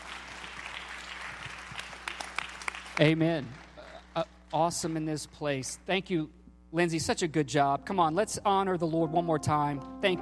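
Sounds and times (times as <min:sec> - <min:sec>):
audience applause: 0:00.0 - 0:03.8
speech: 0:03.0 - 0:03.6, 0:04.2 - 0:10.2.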